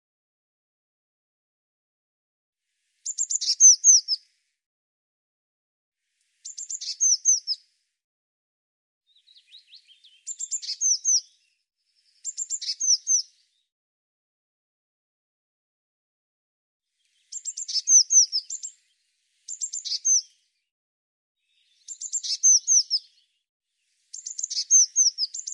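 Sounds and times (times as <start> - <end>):
bird song chips and whistles: 3.1 - 4.2, 6.5 - 7.6, 10.0 - 11.3, 12.2 - 13.2, 17.3 - 18.7, 19.5 - 20.2, 21.9 - 23.1, 24.2 - 25.5.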